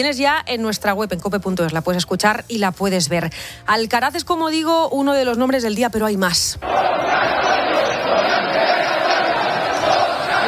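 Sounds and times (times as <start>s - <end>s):
speech: 0.0s - 8.6s
large crowd cheering for a bullfighter: 6.6s - 10.4s.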